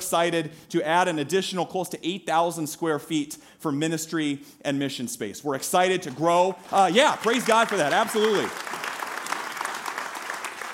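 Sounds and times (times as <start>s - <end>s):
speech: 0.1s - 8.8s
audience clapping: 6.6s - 10.7s.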